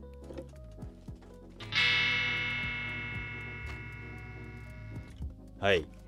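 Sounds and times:
electric guitar with freshly changed strings playing: 1.6s - 5.1s
speech: 5.6s - 6.0s.

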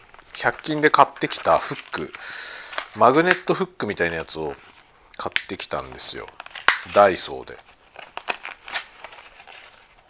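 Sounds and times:
plastic packaging being torn open: 0.0s - 3.5s, 6.0s - 10.0s
speech: 0.4s - 7.7s.

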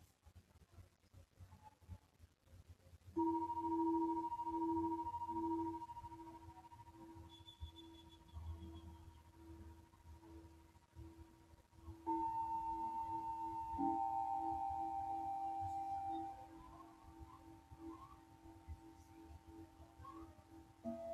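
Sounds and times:
singing bowls ringing from Mexico: 3.2s - 8.9s, 12.0s - 21.1s.

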